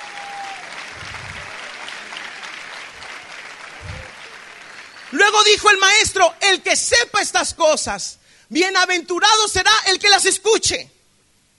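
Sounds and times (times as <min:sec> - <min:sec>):
audience applause: 0:00.0 - 0:06.0
speech: 0:05.1 - 0:11.0.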